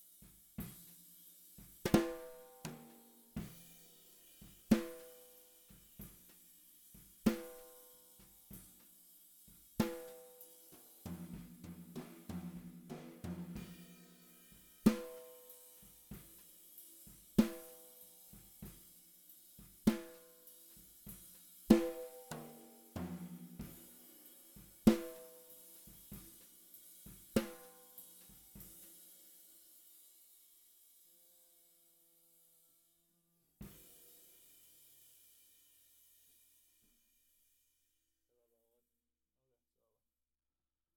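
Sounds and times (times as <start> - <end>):
snare drum: 0.0 - 29.1.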